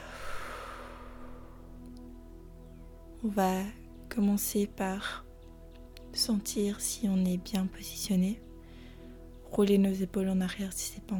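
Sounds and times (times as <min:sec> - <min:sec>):
deep slow breath during a seated guided meditation: 0:00.0 - 0:01.6, 0:08.6 - 0:09.2
speech: 0:03.2 - 0:05.2, 0:06.2 - 0:08.5, 0:09.5 - 0:11.1.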